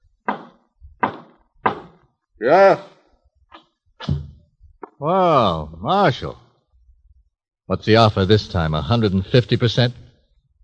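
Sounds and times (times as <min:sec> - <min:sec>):
knocking on a door: 0:00.3 - 0:02.0
speech: 0:02.4 - 0:02.9, 0:05.0 - 0:06.4, 0:07.7 - 0:10.0.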